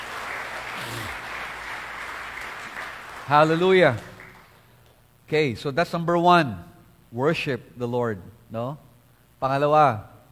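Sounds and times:
audience applause: 0:00.0 - 0:04.6
speech: 0:03.3 - 0:04.1, 0:05.3 - 0:10.1.

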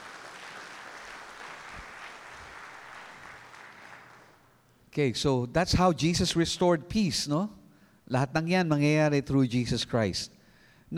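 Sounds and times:
church congregation clapping for the Lord: 0:00.0 - 0:04.6
speech: 0:05.0 - 0:10.9.

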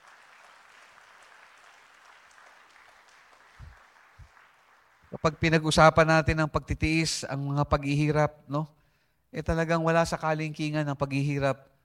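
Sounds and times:
church congregation clapping: 0:00.0 - 0:06.4
speech: 0:05.1 - 0:11.7.

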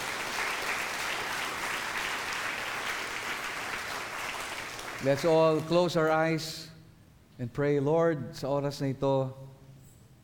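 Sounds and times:
church congregation clapping for the Lord during a service: 0:00.0 - 0:06.4
speech: 0:05.0 - 0:06.6, 0:07.4 - 0:09.5.

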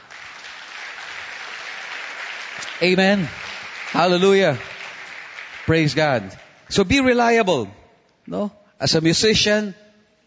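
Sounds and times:
congregation clapping during a church sermon: 0:00.0 - 0:06.9
speech: 0:02.6 - 0:04.7, 0:05.7 - 0:09.8.

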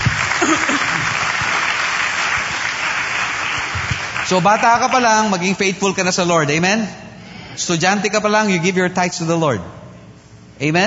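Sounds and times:
audience applauding: 0:00.0 - 0:05.7
speech: 0:04.3 - 0:07.0, 0:07.6 - 0:09.8, 0:10.6 - 0:10.8.

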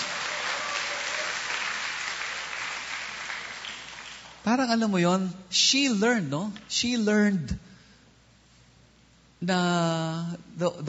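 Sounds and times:
applause offered in praise of the Lord: 0:00.0 - 0:04.5
speech: 0:04.4 - 0:07.7, 0:09.4 - 0:10.8.

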